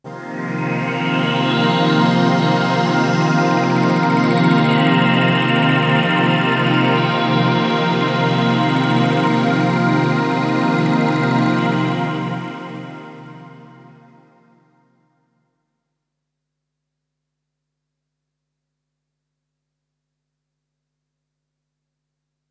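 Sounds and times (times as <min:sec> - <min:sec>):
Triton synthesizer pad playing a C minor seventh chord: 0:00.1 - 0:14.5.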